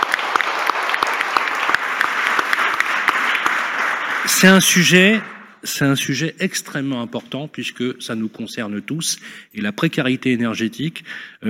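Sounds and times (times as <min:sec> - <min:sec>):
audience applause: 0:00.0 - 0:05.4
speech: 0:04.4 - 0:11.4.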